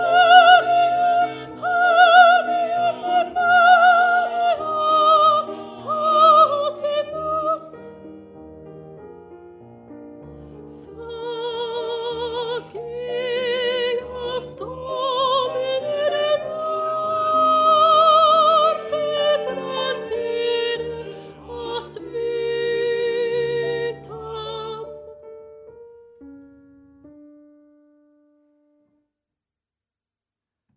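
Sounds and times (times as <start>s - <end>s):
soprano singing: 0.0s - 8.4s, 10.2s - 25.9s.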